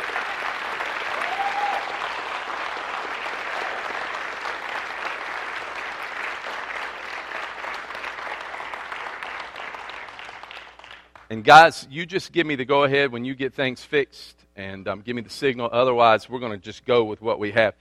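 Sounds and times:
audience hand clapping: 0.0 - 11.3
speech: 11.3 - 17.8.

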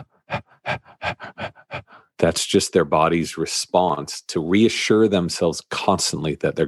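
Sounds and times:
rapid shallow over-breathing: 0.0 - 2.2
speech: 2.2 - 6.6.

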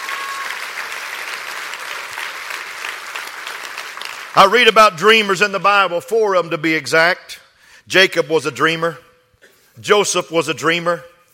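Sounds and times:
audience clapping hands: 0.0 - 4.8
speech: 4.4 - 9.0, 9.8 - 11.1.

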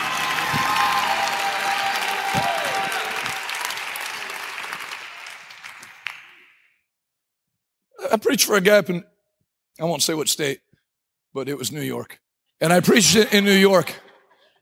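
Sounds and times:
audience shouting: 0.0 - 4.6
audience clapping: 0.0 - 6.7
speech: 8.1 - 9.1, 9.8 - 10.6, 11.3 - 14.0.

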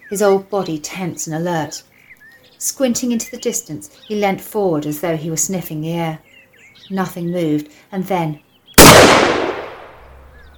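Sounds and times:
speech: 0.1 - 1.9, 2.6 - 6.3, 6.9 - 8.4
single gunshot in open fields: 8.8 - 10.1.

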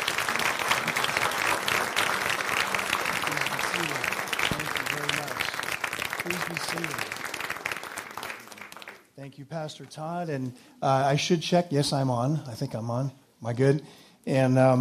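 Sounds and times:
congregation applause welcoming a pastor: 0.0 - 9.2
speech: 6.4 - 7.1, 9.2 - 14.7.

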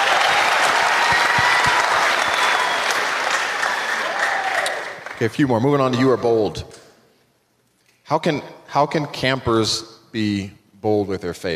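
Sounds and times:
crowd clapping: 0.0 - 5.5
speech: 5.2 - 6.8, 8.1 - 11.5.

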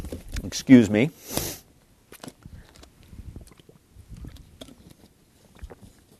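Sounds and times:
speech: 0.5 - 1.5
speaker drinking water: 2.2 - 6.1.

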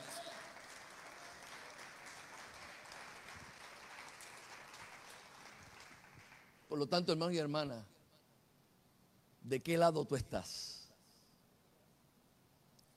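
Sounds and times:
audience applause: 0.0 - 6.6
speech: 6.7 - 7.9, 9.5 - 10.8.

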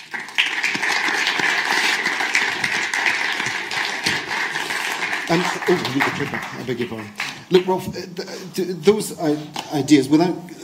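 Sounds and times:
audience applause: 0.0 - 7.6
speech: 5.3 - 10.6.

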